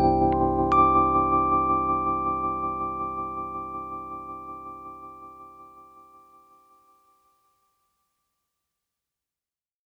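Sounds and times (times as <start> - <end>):
electric piano with tremolo: 0.0 - 5.9.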